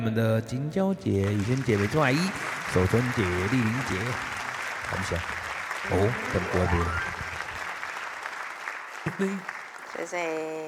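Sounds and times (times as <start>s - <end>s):
speech: 0.0s - 7.1s, 9.1s - 10.6s
laughter: 1.2s - 7.7s, 9.1s - 9.4s
audience applause at a singing gathering: 1.2s - 10.6s.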